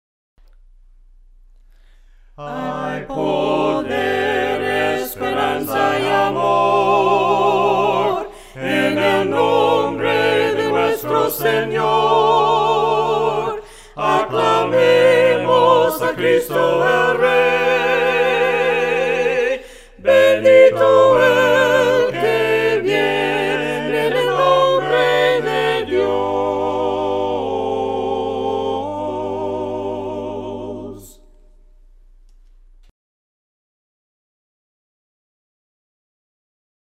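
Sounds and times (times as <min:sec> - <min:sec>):
people singing a cappella: 0:02.4 - 0:31.5.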